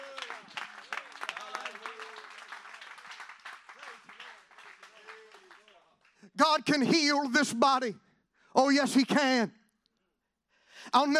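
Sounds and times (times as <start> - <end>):
audience clapping hands: 0.0 - 6.9
speech: 6.4 - 8.0, 8.6 - 9.6, 10.9 - 11.1.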